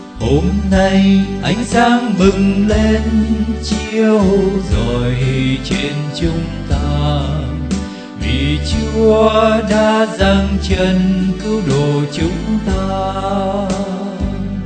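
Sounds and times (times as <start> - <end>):
soprano singing: 0.2 - 14.5.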